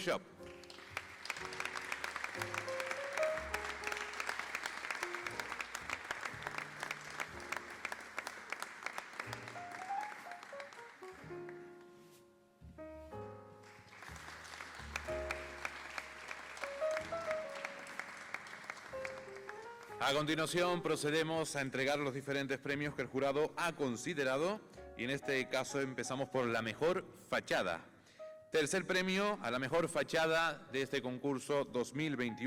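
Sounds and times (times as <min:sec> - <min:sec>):
speech: 0:00.0 - 0:00.5, 0:02.4 - 0:02.6, 0:20.1 - 0:27.9, 0:28.5 - 0:32.4
music: 0:00.0 - 0:32.4
audience applause: 0:00.4 - 0:11.6, 0:13.6 - 0:20.0.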